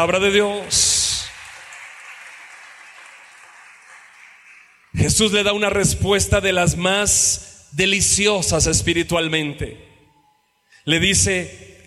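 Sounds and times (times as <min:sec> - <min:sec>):
speech: 0:00.0 - 0:01.0, 0:05.0 - 0:09.9, 0:10.8 - 0:11.7
audience applauding: 0:00.0 - 0:05.3.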